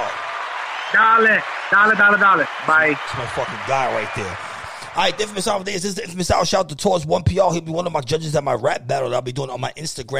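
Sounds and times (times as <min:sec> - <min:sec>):
crowd applause: 0:00.0 - 0:06.0
speech: 0:00.9 - 0:10.1.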